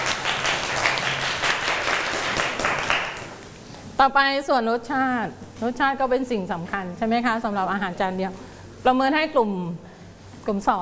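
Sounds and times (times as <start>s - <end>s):
classroom students clapping: 0.0s - 3.5s
speech: 4.0s - 10.8s.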